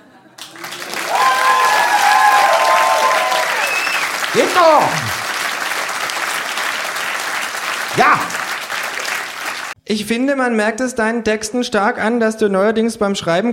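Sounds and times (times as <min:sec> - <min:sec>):
loud audience applause: 0:00.4 - 0:09.8
speech: 0:04.5 - 0:05.2, 0:09.9 - 0:13.5.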